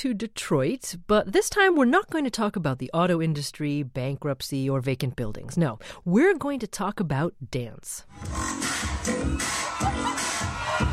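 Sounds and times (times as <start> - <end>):
speech: 0.0 - 10.9
crowd cheering and shouting for Detroit dancers performing the JIT: 8.6 - 10.9.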